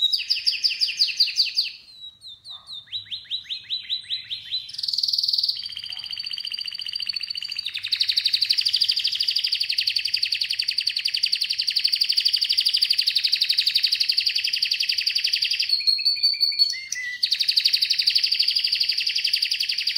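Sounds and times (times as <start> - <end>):
canary singing: 0.0 - 19.9.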